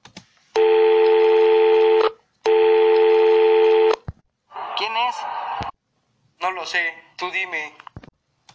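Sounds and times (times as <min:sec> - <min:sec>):
incoming phone call tone: 0:00.6 - 0:04.0
speech: 0:06.6 - 0:07.9.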